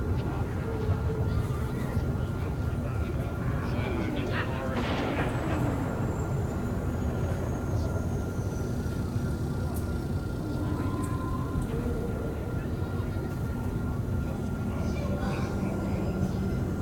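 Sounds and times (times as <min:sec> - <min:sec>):
market ambience: 0:00.0 - 0:16.7.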